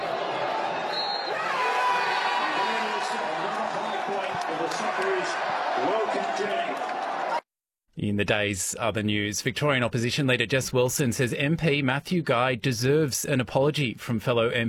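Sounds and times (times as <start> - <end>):
crowd cheering at end of match at Fed Square: 0.0 - 7.5
speech: 5.2 - 6.9, 8.0 - 14.6.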